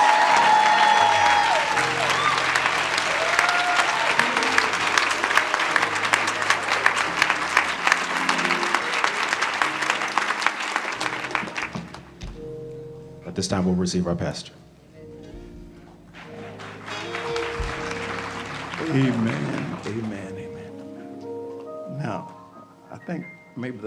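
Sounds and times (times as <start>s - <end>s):
crowd cheering: 0.0s - 11.9s, 16.2s - 20.2s
audience applause: 0.0s - 12.2s, 16.2s - 20.6s
speech: 13.4s - 14.6s.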